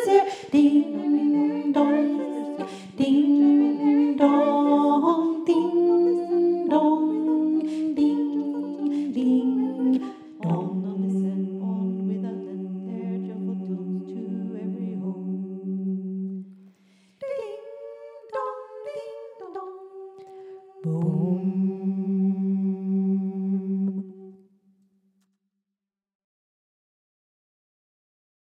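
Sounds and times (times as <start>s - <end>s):
bass part of a carol: 0.0s - 16.6s, 20.8s - 24.4s.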